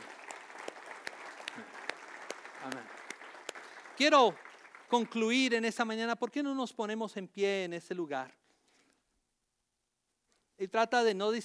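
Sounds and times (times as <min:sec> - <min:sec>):
audience applause: 0:00.0 - 0:05.5
speech: 0:04.0 - 0:08.4, 0:10.6 - 0:11.4.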